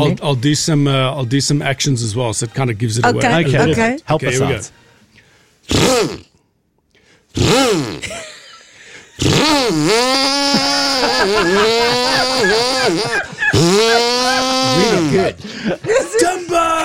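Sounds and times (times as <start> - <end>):
speech: 0.0 - 4.8, 5.7 - 6.3, 7.4 - 8.3, 9.2 - 16.8
laughter: 3.1 - 4.5, 8.0 - 9.4, 10.1 - 16.8
voice imitating a chainsaw: 3.1 - 4.5, 5.7 - 6.3, 7.4 - 8.1, 9.2 - 15.4.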